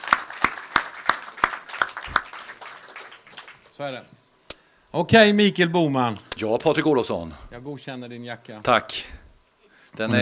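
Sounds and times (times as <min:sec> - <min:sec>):
audience applause: 0:00.0 - 0:03.8
speech: 0:03.8 - 0:04.2, 0:04.9 - 0:09.2, 0:10.0 - 0:10.2.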